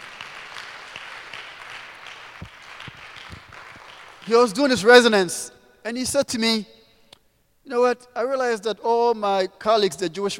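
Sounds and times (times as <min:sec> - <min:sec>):
crowd of people clapping in a large room: 0:00.0 - 0:04.6
speech: 0:04.3 - 0:06.8, 0:07.7 - 0:10.3.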